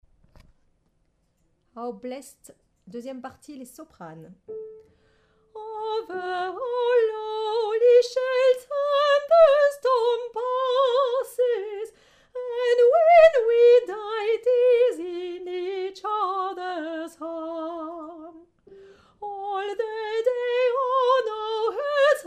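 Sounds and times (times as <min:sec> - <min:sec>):
soprano singing: 0:05.5 - 0:22.2.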